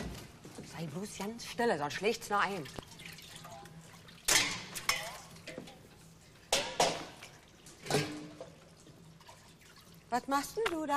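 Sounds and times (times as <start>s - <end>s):
speech: 0.8s - 2.8s, 10.1s - 10.9s
water dripping: 2.3s - 10.9s
dishes clinking while washed up: 4.2s - 8.7s.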